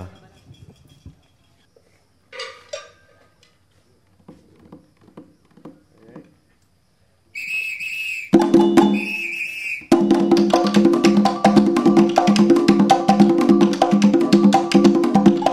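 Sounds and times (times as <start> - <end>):
Afro-Samba music: 7.4 - 15.5.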